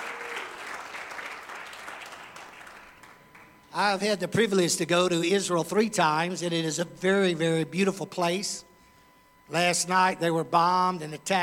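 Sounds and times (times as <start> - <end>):
audience applause: 0.0 - 3.5
speech: 3.8 - 8.7, 9.5 - 11.4.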